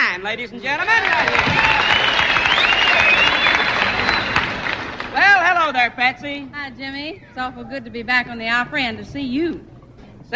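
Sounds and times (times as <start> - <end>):
speech: 0.2 - 2.0, 5.7 - 9.7
audience clapping at the Grand Ole Opry: 0.6 - 5.5.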